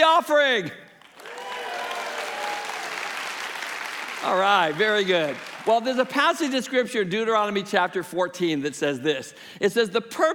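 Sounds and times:
speech: 0.0 - 0.9, 4.2 - 10.3
audience clapping: 1.0 - 6.5
audience cheering: 1.2 - 5.9.

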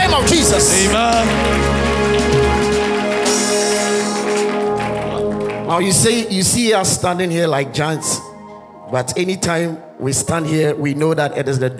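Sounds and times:
audience clapping: 0.0 - 7.3
sustained musical tones: 0.0 - 11.7
speech: 0.2 - 1.7, 5.7 - 8.2, 8.9 - 11.7.

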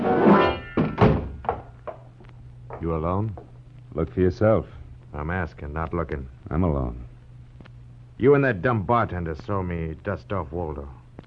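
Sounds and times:
door kicked shut: 0.8 - 1.6
speech: 2.8 - 7.1, 8.2 - 11.0.

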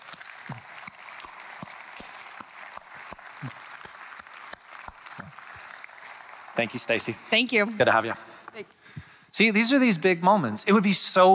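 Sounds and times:
church audience round of applause: 0.0 - 8.1
speech: 6.6 - 8.8, 9.4 - 11.3.

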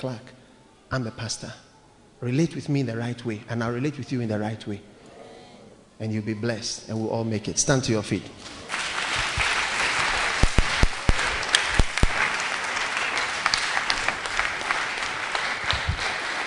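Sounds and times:
speech: 0.0 - 0.3, 0.9 - 4.9, 6.0 - 8.8
crowd clapping: 8.7 - 16.4.

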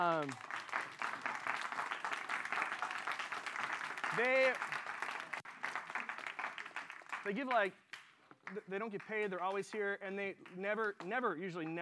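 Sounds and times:
speech: 0.0 - 0.6, 4.1 - 4.8, 7.2 - 7.8, 8.5 - 11.8
audience round of applause: 0.0 - 7.7.

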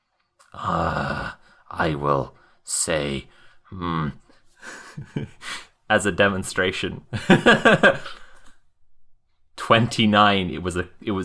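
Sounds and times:
person imitating a growl: 0.5 - 1.4
speech: 0.5 - 8.2, 9.7 - 11.2
laughter: 4.6 - 5.5, 7.1 - 8.3.

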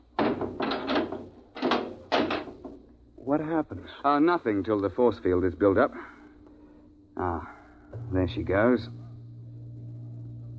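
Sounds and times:
hatch slamming shut: 0.0 - 2.8
speech: 3.3 - 6.2, 7.2 - 9.0.

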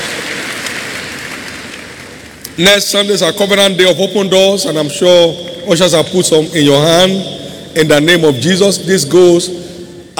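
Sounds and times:
audience clapping: 0.0 - 2.3
speech: 2.6 - 9.7.

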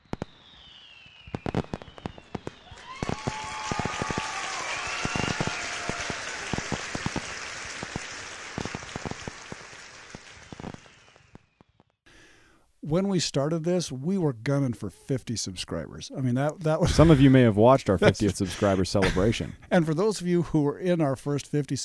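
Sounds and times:
crowd applause and cheering: 2.6 - 11.3
speech: 12.9 - 21.8
laughter: 16.8 - 19.7.

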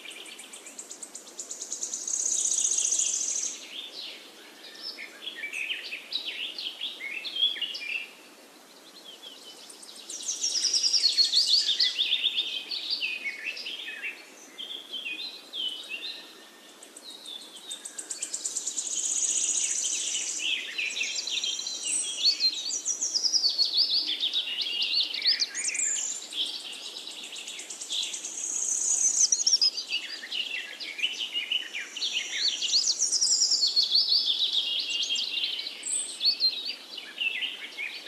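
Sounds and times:
forest birds singing: 0.0 - 38.0.

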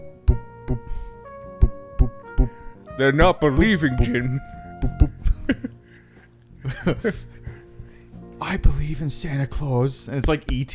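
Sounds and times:
heartbeat: 0.2 - 4.2, 4.8 - 5.5
speech: 3.0 - 5.0, 6.8 - 7.3, 8.5 - 10.7.

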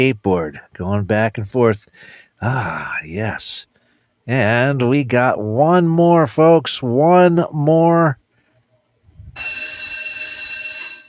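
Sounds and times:
speech: 0.0 - 3.7, 4.3 - 8.2, 9.4 - 9.7
school bell ringing: 9.4 - 11.0.

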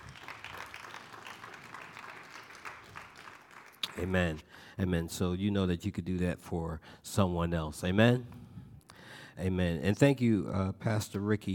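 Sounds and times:
audience applause: 0.0 - 4.2
speech: 4.0 - 8.4, 9.4 - 11.5.

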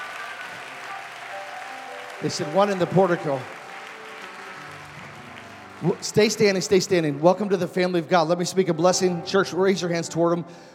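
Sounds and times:
church congregation applauding: 0.0 - 8.4
speech: 2.2 - 3.6, 5.8 - 10.7.

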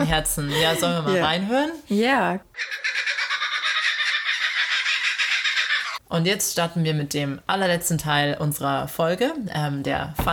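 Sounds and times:
speech: 0.0 - 2.9, 6.1 - 10.3
bird call that sounds like mocking laughter: 2.6 - 6.0.

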